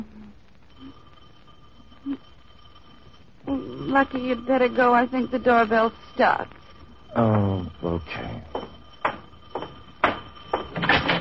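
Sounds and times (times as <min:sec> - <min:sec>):
speech: 0:03.9 - 0:08.8
front door scraping shuffle: 0:08.6 - 0:11.1.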